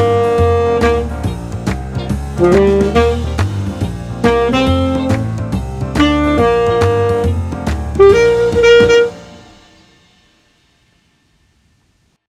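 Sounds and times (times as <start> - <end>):
saxophone: 0.0 - 9.7.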